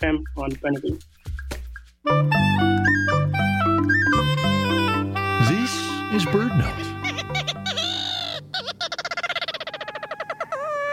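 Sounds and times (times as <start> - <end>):
speech: 0.0 - 1.4, 2.0 - 3.1
Ross's gull calling: 3.8 - 10.9.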